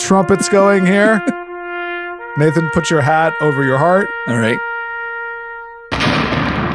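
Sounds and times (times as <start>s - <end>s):
laughter: 0.0s - 1.4s
speech: 0.1s - 1.4s, 2.4s - 4.7s
explosion salute sound effect: 5.9s - 6.7s.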